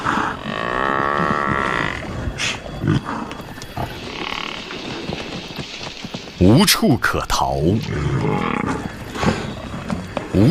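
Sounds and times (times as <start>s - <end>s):
several lions roaring and growling: 0.0s - 5.4s, 7.7s - 10.4s
speech: 6.4s - 8.6s.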